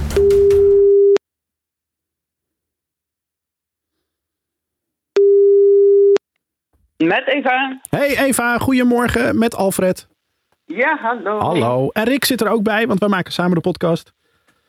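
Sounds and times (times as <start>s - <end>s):
ringback tone from an outgoing phone call: 0.1s - 1.2s, 5.2s - 6.2s
speech: 7.0s - 14.2s.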